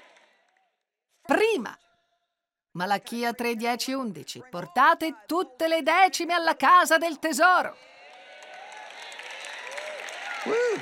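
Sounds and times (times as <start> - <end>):
audience applauding: 0.0 - 0.5, 7.7 - 10.7
speech: 1.3 - 1.8, 2.8 - 7.9, 10.4 - 10.7.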